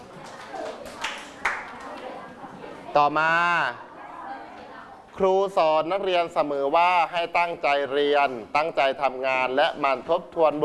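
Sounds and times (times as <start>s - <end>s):
children clapping: 0.0s - 2.2s
speech: 2.9s - 3.9s, 5.2s - 10.6s.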